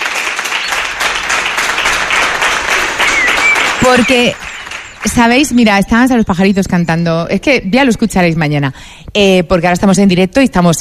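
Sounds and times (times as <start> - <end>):
audience applause: 0.0 - 5.4
speech: 3.9 - 10.7.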